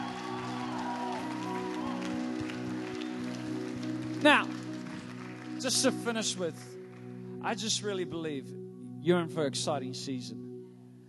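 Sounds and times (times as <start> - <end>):
audience clapping: 0.0 - 7.2
speech: 4.2 - 4.6, 5.6 - 6.8, 7.4 - 10.4.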